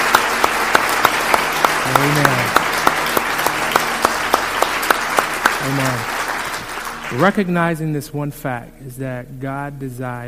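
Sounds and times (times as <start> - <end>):
audience hand clapping: 0.0 - 7.7
speech: 7.1 - 10.2.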